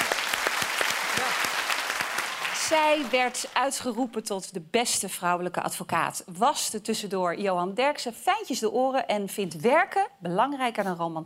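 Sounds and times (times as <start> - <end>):
audience applause: 0.0 - 3.9
speech: 2.7 - 11.2.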